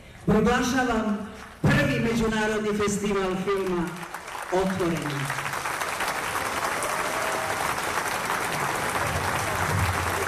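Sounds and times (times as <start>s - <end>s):
speech: 0.3s - 5.4s
applause from a packed summer stage at the first international film festival in Niš: 3.0s - 10.2s.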